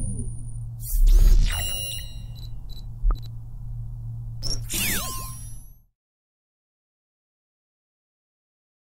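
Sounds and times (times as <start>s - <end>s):
sci-fi robotic UI sounds: 0.0s - 3.3s, 4.4s - 5.8s.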